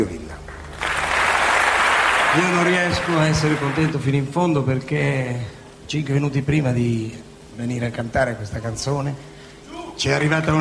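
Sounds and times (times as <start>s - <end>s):
audience applause: 0.5s - 4.2s, 10.0s - 10.5s
speech: 2.4s - 9.4s, 10.0s - 10.5s.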